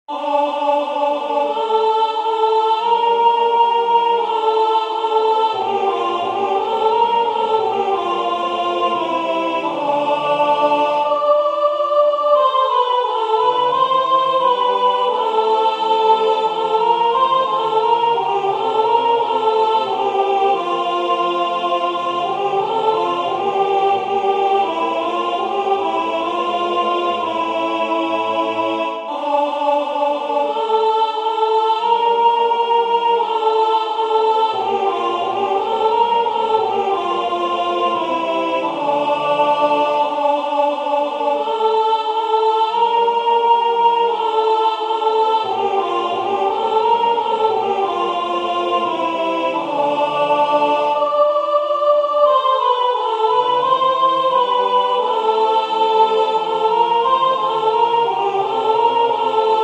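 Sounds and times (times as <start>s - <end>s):
soprano singing sacred music: 0.1s - 59.6s.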